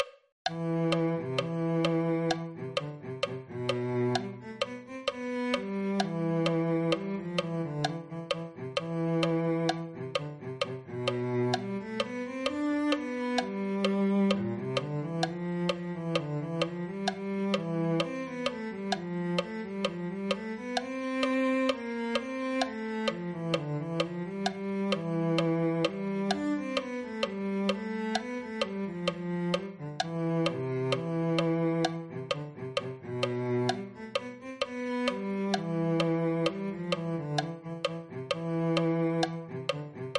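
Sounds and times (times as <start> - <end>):
cello: 0.0 - 40.1.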